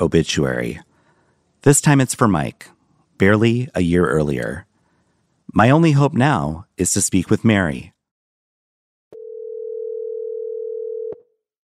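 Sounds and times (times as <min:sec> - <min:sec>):
speech: 0:00.0 - 0:00.9, 0:01.6 - 0:04.7, 0:05.5 - 0:07.9
telephone ringing on outgoing call: 0:09.2 - 0:11.2.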